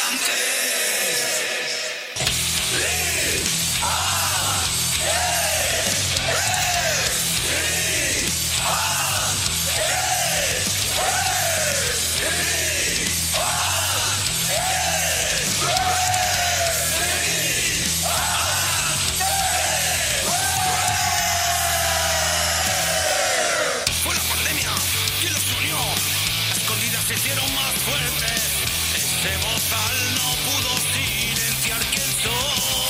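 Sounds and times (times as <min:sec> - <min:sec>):
shouted bellowing vocals: 0:00.0 - 0:24.0
heavy metal anthem: 0:02.1 - 0:32.8
distorted guitars: 0:02.2 - 0:32.8
steady drums: 0:02.2 - 0:32.8.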